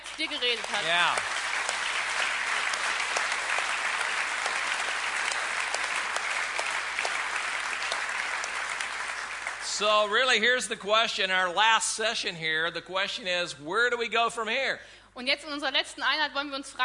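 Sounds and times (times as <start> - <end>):
crowd applauding: 0.0 - 10.8
speech: 0.2 - 1.3, 9.8 - 16.8.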